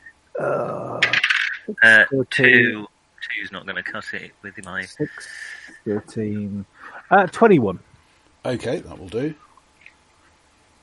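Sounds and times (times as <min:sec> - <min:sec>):
ten-sided die rolling for a tabletop game: 0:01.0 - 0:01.7
speech: 0:01.7 - 0:09.4.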